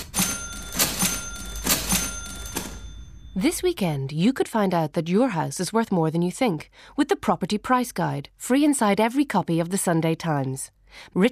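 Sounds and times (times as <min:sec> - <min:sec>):
faulty doorbell sounding when pressed: 0:00.0 - 0:03.6
speech: 0:03.4 - 0:11.3.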